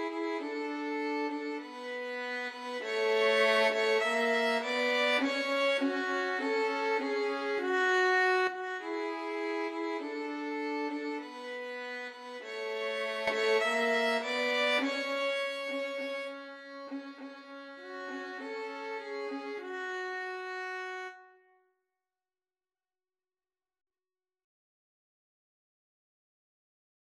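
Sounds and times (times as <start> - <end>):
violin trio: 0.0 - 21.2.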